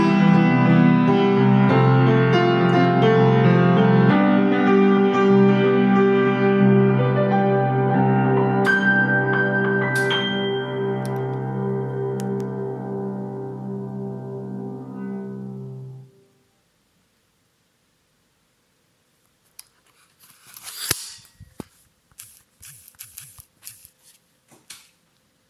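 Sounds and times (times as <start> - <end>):
emotional piano: 0.0 - 16.2.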